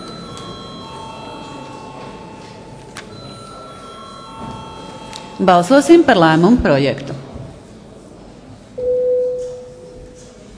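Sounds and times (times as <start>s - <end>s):
parliament voting bell ringing: 0.0s - 6.6s
speech: 5.4s - 7.2s.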